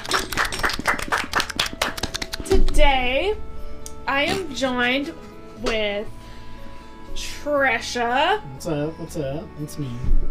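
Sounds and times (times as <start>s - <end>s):
round of applause: 0.0s - 2.5s
speech: 4.1s - 6.2s, 7.2s - 10.2s.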